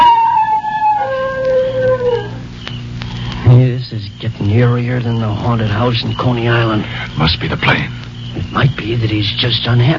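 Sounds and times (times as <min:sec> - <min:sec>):
dog howling: 0:00.0 - 0:02.5
speech: 0:04.6 - 0:09.9.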